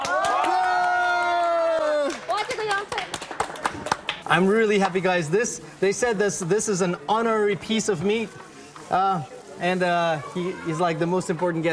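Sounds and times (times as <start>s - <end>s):
group cheering at a gathering: 0.0s - 2.5s
group applauding at a gathering: 0.0s - 4.5s
speech: 4.3s - 11.7s.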